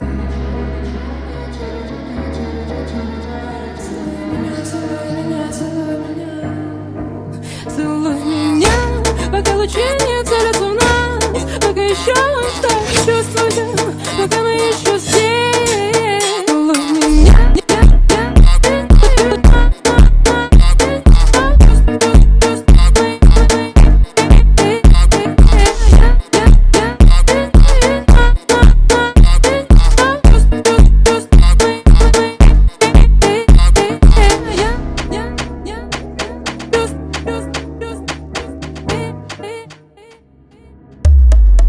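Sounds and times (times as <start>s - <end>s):
ultra slowed phonk music: 8.6s - 39.5s, 41.1s - 41.6s.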